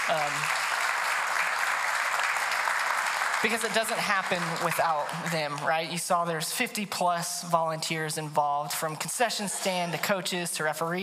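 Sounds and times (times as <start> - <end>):
audience round of applause: 0.0 - 5.7
speech: 0.1 - 0.6, 3.4 - 11.0.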